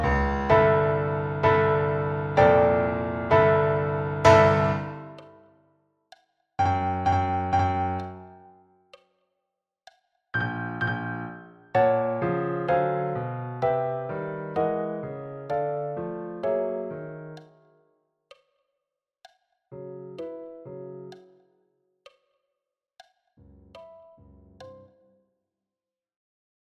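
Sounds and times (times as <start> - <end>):
solo piano: 0.0 - 5.4, 6.6 - 8.6, 10.4 - 17.6, 19.7 - 21.2.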